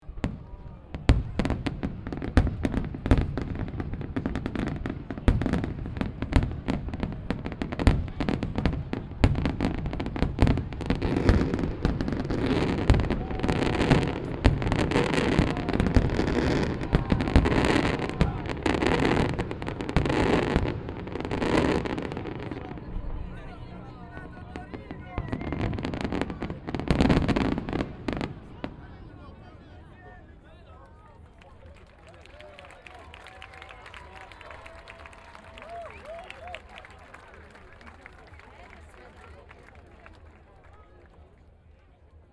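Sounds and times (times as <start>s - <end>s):
fireworks: 0.0s - 29.4s.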